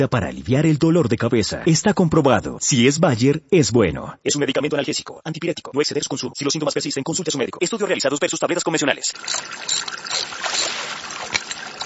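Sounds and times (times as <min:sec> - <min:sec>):
speech: 0:00.0 - 0:10.1
water trickling from a water meter: 0:09.0 - 0:11.8.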